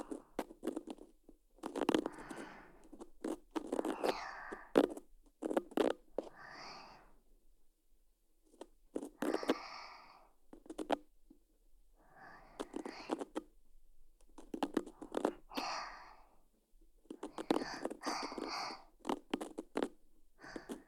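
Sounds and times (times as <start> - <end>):
ear cleaning sounds for sleep: 0.0 - 6.4, 12.4 - 13.5, 14.3 - 15.9, 17.1 - 20.8.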